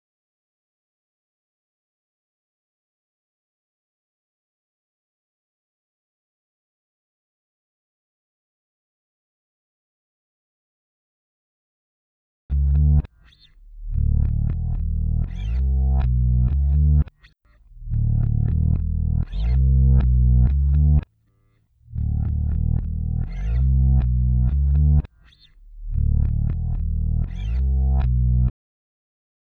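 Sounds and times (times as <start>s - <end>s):
bass: 12.5s - 28.5s.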